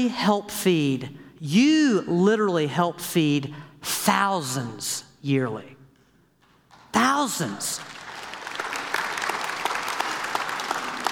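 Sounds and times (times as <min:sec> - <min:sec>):
speech: 0:00.0 - 0:05.8, 0:07.0 - 0:08.0
audience applauding: 0:07.7 - 0:11.0.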